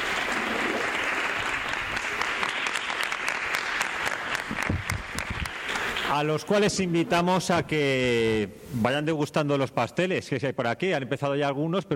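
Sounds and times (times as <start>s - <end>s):
audience applause: 0.0s - 6.2s
speech: 6.1s - 11.9s.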